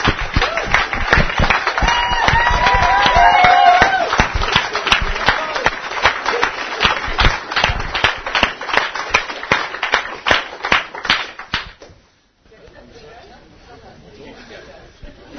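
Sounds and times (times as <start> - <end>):
audience applauding the speakers at an event: 0.0 - 11.7.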